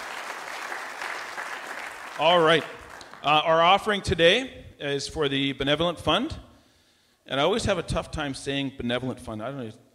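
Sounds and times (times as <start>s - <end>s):
audience applause: 0.0s - 3.4s
speech: 2.2s - 6.4s, 7.3s - 9.8s.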